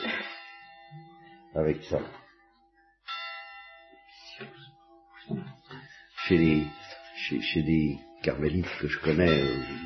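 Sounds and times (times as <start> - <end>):
bells ringing: 0.0 - 4.7, 5.5 - 9.8
speech: 1.6 - 2.2, 6.3 - 9.8.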